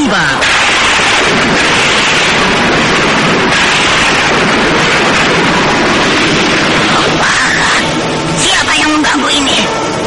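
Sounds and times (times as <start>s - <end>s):
strong gusting wind: 0.0s - 10.0s
sudden thunderclap: 0.0s - 10.0s.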